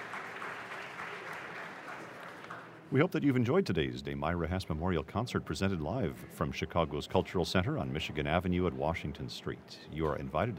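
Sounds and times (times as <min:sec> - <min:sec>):
audience applause in Preston Bradley Hall at Chicago's Cultural Center: 0:00.0 - 0:02.8
speech: 0:02.9 - 0:10.5.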